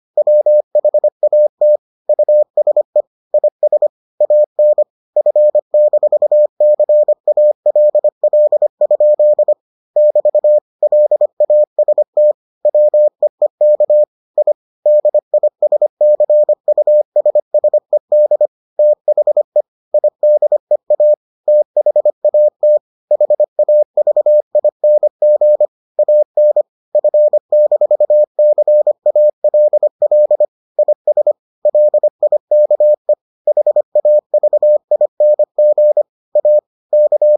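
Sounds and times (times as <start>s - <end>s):
morse code beeps: 0.2s - 37.3s.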